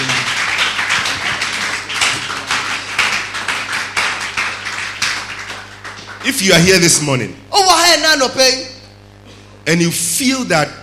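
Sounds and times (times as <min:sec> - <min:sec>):
crowd clapping hands: 0:00.0 - 0:07.0
low steady hum: 0:00.0 - 0:10.8
speech: 0:06.3 - 0:08.7, 0:09.6 - 0:10.8.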